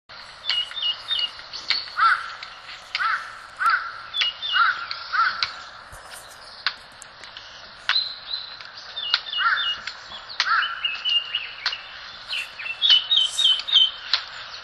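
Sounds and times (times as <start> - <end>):
Red-billed leiothrix giving harsh nasal call notes in Sasakubo valley: 0.2 - 6.7, 10.4 - 14.1.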